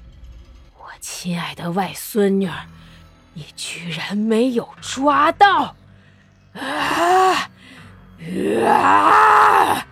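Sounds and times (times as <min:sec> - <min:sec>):
speech: 0:01.0 - 0:02.8, 0:03.4 - 0:05.8, 0:06.6 - 0:07.5, 0:08.2 - 0:09.8
sharp shrill screams: 0:08.3 - 0:09.8.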